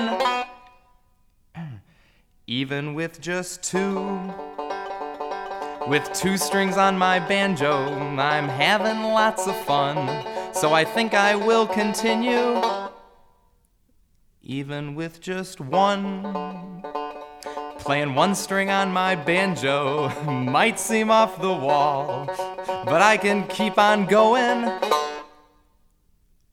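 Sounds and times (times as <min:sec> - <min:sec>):
five-string banjo playing: 0:00.0 - 0:00.8, 0:03.6 - 0:13.2, 0:15.6 - 0:25.4.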